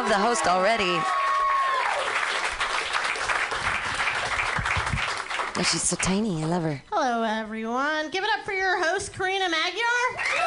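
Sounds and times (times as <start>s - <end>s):
audience applause for a comedian at a live stand-up comedy show: 0.0s - 6.0s
speech: 0.1s - 1.2s, 5.6s - 10.4s.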